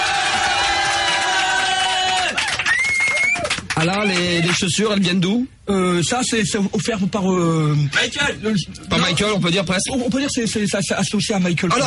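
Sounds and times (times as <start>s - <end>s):
crowd cheering and whooping in a standing ovation in a radio studio: 0.0s - 4.7s
speech: 3.8s - 11.8s.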